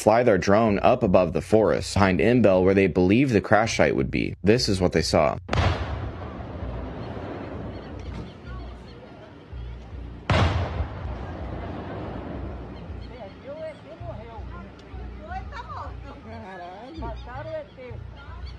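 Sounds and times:
speech: 0.0 - 5.7
gunfire of a firefight in woods: 5.5 - 8.6, 10.3 - 12.8
military vehicles: 6.2 - 18.5.

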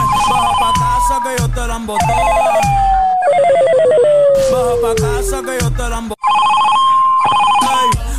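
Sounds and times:
low thudding beats: 0.0 - 3.2, 4.4 - 6.1
speech: 1.8 - 2.3
telephone ringing tone: 2.0 - 4.2, 6.2 - 8.0.

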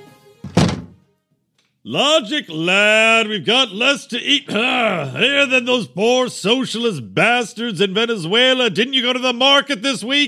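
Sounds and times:
kitchen cabinet doors opening and closing: 0.4 - 1.0
speech: 1.8 - 10.2.

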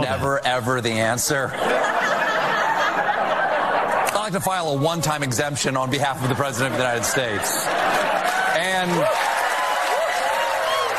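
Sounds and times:
speech: 0.0 - 2.2, 4.3 - 9.4
laughter: 0.0 - 10.8
studio audience applause: 6.4 - 10.9.

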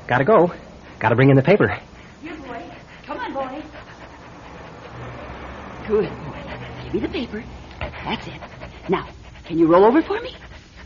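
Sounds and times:
speech: 0.1 - 1.9, 5.9 - 6.2, 6.9 - 10.5
dog panting: 0.2 - 10.8.

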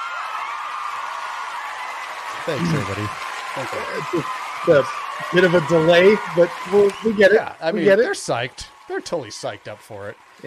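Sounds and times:
crowd cheering and applause effect: 0.0 - 10.4
speech: 2.4 - 10.4
laughter: 2.5 - 8.4.

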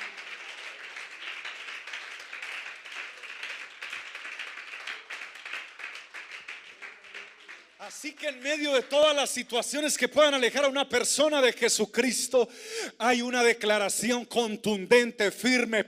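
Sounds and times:
audience applauding: 0.0 - 9.4
speech: 7.9 - 15.8.

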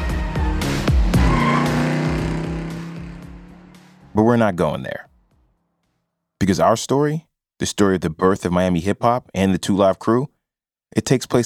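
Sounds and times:
drop-top convertibles revving up and down Ocean Drive: 0.4 - 4.6
speech: 4.2 - 5.1, 6.4 - 11.4.

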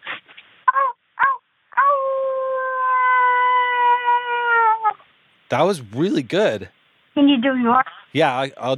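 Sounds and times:
person imitating a werewolf howl: 0.8 - 5.0
speech: 5.5 - 8.7.

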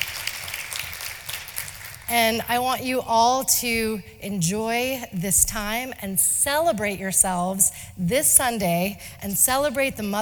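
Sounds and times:
audience applause: 0.0 - 2.1
speech: 2.1 - 10.2.

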